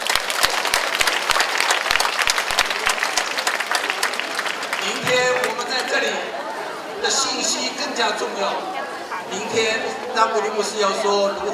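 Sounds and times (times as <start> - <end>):
audience applause: 0.0 - 6.5
speech: 6.0 - 6.4, 7.0 - 8.7, 9.3 - 11.5.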